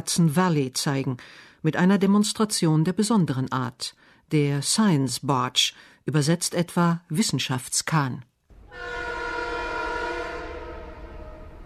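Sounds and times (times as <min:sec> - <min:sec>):
speech: 0:00.0 - 0:08.9
train horn blast near the historic railway station in Yonkers: 0:08.5 - 0:11.6.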